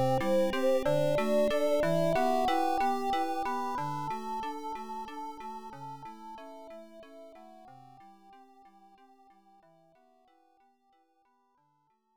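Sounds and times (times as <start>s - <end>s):
background music: 0.0s - 9.6s.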